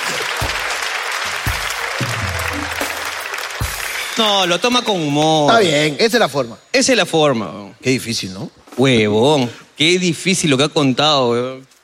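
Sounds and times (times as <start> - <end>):
audience applause at a Spanish-language comedy talk: 0.0 - 4.8
low tones: 2.0 - 3.3
speech: 4.2 - 11.7.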